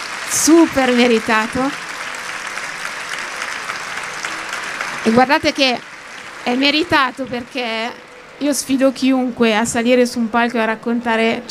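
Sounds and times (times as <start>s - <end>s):
audience applause for a performer: 0.0s - 9.0s
speech: 0.3s - 1.8s, 5.0s - 11.5s.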